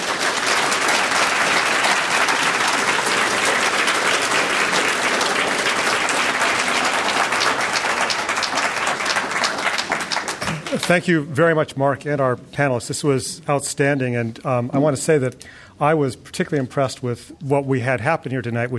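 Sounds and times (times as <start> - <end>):
audience applause for panel: 0.0 - 11.1
speech: 10.9 - 18.7.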